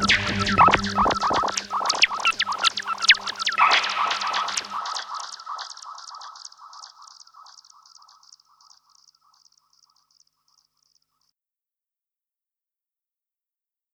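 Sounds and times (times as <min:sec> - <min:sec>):
guitar with delay effect: 0:00.0 - 0:05.5.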